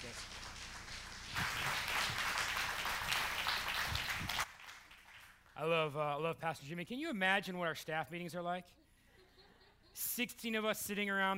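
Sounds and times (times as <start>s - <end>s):
audience applause: 0.0s - 5.4s
speech: 5.6s - 8.8s, 10.0s - 11.3s.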